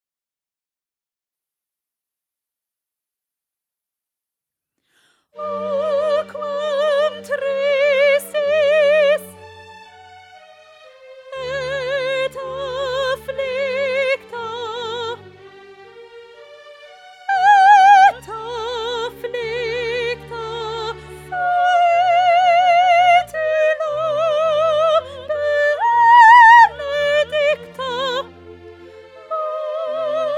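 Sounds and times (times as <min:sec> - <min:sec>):
soprano singing: 0:05.3 - 0:30.3.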